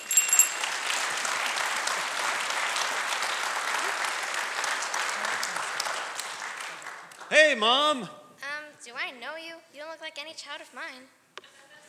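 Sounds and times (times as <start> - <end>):
audience applause: 0.0 - 7.5
speech: 7.3 - 8.2, 8.9 - 11.2.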